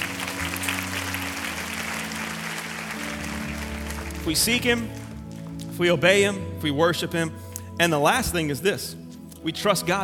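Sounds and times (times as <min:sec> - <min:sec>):
audience clapping hands: 0:00.0 - 0:05.8
speech: 0:04.2 - 0:05.0, 0:05.8 - 0:10.0.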